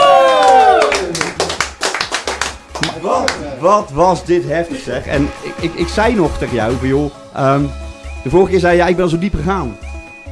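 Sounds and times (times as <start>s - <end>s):
applause: 0.0s - 3.5s
speech: 3.1s - 9.8s.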